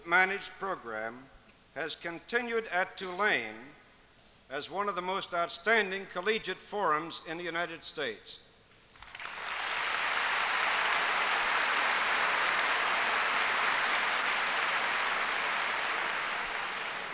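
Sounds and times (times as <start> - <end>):
speech: 0.1 - 3.8, 4.5 - 8.4
student audience applause: 9.0 - 17.1.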